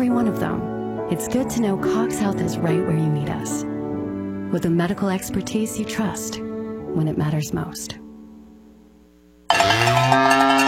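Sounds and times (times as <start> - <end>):
speech: 0.0 - 3.7, 4.5 - 8.0
cow mooing at a livestock stockyard: 9.5 - 10.6.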